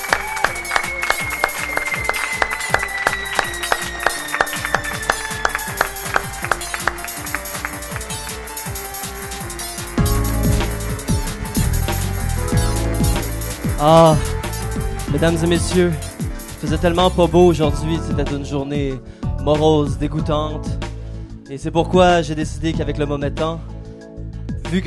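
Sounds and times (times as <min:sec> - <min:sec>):
crowd clapping and cheering: 0:00.0 - 0:16.6
theme tune with sliding tone: 0:00.0 - 0:17.6
loud music with heavy bass: 0:00.0 - 0:21.2
speech: 0:13.8 - 0:14.3, 0:15.2 - 0:20.8, 0:21.5 - 0:23.7, 0:24.7 - 0:24.8.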